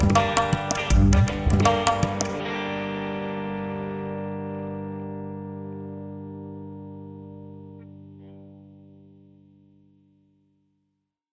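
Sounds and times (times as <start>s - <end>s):
Indian Bollywood dance music at 148 BPM: 0.0s - 2.4s
sitar: 0.0s - 8.6s.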